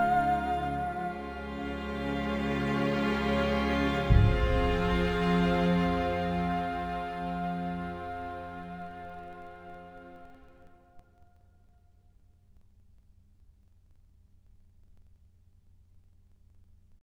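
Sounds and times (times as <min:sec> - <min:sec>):
sad strings: 0:00.0 - 0:10.9.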